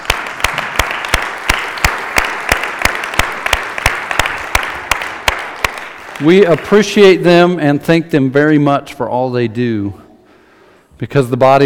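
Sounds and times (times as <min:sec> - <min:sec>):
round of applause: 0:00.0 - 0:07.3
speech: 0:06.2 - 0:10.0, 0:11.0 - 0:11.6.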